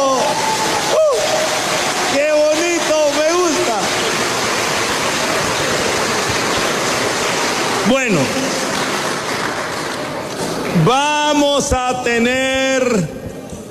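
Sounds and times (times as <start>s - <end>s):
audience applause: 0.0s - 11.4s
speech: 11.6s - 13.2s.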